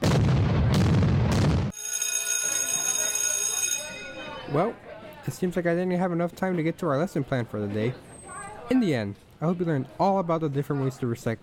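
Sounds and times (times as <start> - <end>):
cartoon explosion effect for a brain bursting: 0.0 - 1.7
sustained high ringing tone: 1.7 - 4.6
speech: 4.5 - 8.1, 8.7 - 11.4.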